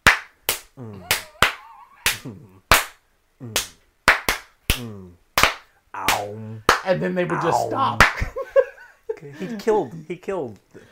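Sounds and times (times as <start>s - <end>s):
loud offbeat hand claps: 0.0s - 3.0s, 3.6s - 6.9s, 8.0s - 8.3s
person humming: 0.8s - 2.6s, 4.7s - 5.2s, 6.0s - 8.0s
laughter: 0.9s - 2.5s, 7.4s - 9.6s
speech: 2.2s - 2.7s, 6.9s - 8.2s, 9.2s - 10.9s.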